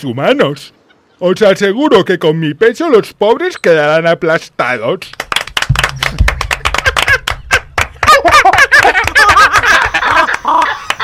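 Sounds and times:
speech: 0.0s - 5.2s
loud applause: 5.3s - 11.0s
people laughing and cheering: 5.7s - 11.0s.

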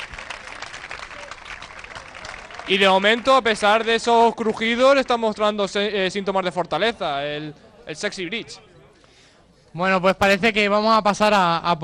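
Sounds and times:
audience applause at a bridge load-testing contest: 0.0s - 5.3s
speech: 2.7s - 8.7s, 9.8s - 11.8s.

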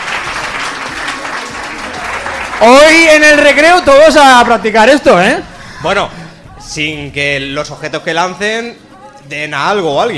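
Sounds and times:
group clapping after a throwing demonstration at a school talk: 0.0s - 4.6s
speech: 2.6s - 10.1s.

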